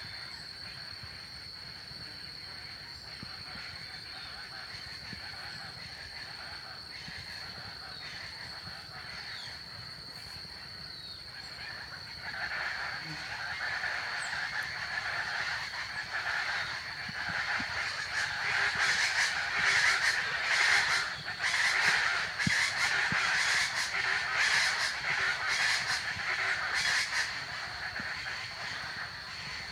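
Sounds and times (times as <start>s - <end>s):
Chaco chachalacas raucous calls: 0.0s - 29.7s
high-pitched insect buzz: 0.0s - 29.7s.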